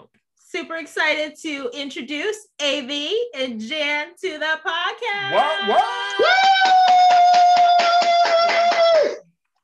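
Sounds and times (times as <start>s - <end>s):
speech: 0.5s - 9.2s
crowd applause sound effect: 5.3s - 9.1s.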